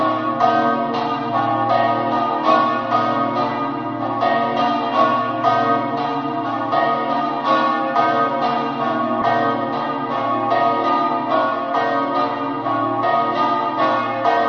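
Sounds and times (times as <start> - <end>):
church bells in Tarcento: 0.0 - 14.4.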